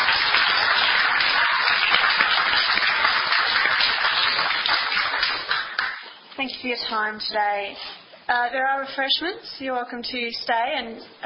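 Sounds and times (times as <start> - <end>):
audience applause after a presentation: 0.0 - 6.1
speech: 6.6 - 11.2.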